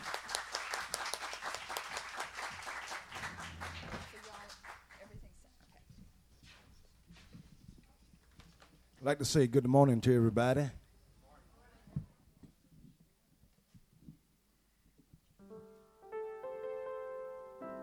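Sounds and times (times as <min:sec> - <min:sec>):
audience applause welcoming performers: 0:00.0 - 0:05.1
speech: 0:09.0 - 0:10.8.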